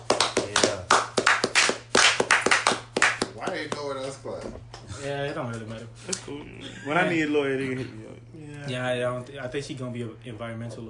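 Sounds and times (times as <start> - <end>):
hands clapping: 0.0 - 4.8
speech: 3.6 - 10.8.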